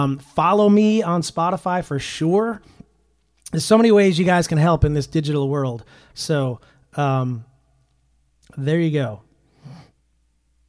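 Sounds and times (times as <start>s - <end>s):
speech: 0.0s - 2.8s, 3.5s - 7.5s, 8.5s - 9.8s
sniffling: 9.5s - 10.0s.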